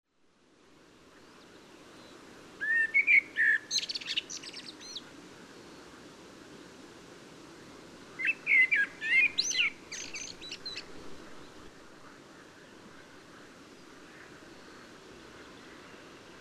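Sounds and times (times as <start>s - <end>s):
hiss: 0.1s - 16.3s
common blackbird singing: 2.0s - 5.0s, 8.2s - 10.9s.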